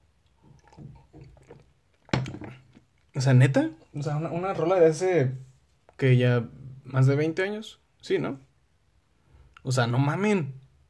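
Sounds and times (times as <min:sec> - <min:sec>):
person drinking water: 0:00.2 - 0:03.1
speech: 0:03.2 - 0:08.5, 0:09.6 - 0:10.6.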